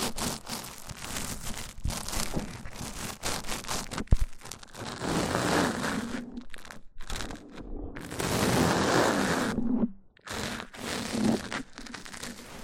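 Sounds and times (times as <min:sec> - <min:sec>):
mic-on-mic rubbing: 0:00.0 - 0:11.6.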